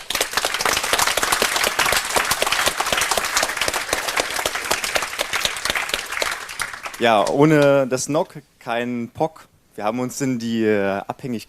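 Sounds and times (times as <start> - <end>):
audience applause: 0.0 - 7.8
speech: 7.0 - 11.4.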